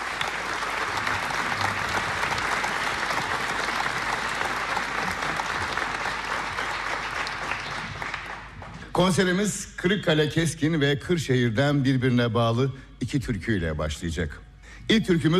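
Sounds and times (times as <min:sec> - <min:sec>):
audience applause at a folk song concert: 0:00.0 - 0:08.9
speech: 0:09.0 - 0:15.3.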